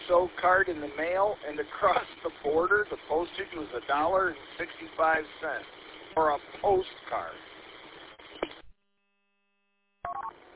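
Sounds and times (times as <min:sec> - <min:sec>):
hissy band-limited radio audio: 0:00.0 - 0:08.7
speech: 0:00.1 - 0:07.5
radio transmitter roger beep: 0:10.1 - 0:10.3.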